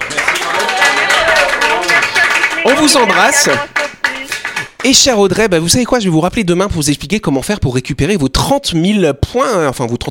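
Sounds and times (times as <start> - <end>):
studio applause: 0.0 - 5.4
speech: 2.7 - 3.8, 4.8 - 10.0.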